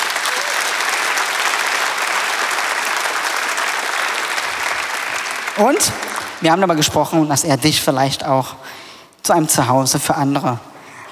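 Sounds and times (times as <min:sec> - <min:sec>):
audience applause: 0:00.0 - 0:06.9
speech: 0:05.6 - 0:10.7.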